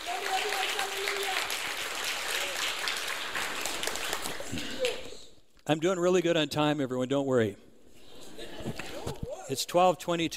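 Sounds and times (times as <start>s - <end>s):
faint voices and cheers: 0.0s - 1.6s
audience applause: 0.0s - 5.2s
speech: 5.7s - 7.6s, 9.5s - 10.3s.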